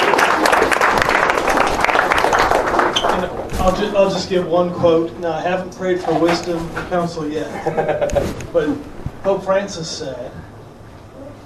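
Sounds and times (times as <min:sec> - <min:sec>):
audience applauding: 0:00.0 - 0:03.5
speech: 0:03.6 - 0:10.4
laughter: 0:07.4 - 0:08.8.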